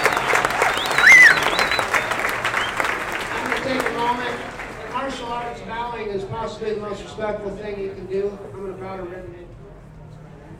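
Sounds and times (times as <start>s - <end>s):
audience applause: 0.0s - 5.4s
speech: 5.6s - 9.5s.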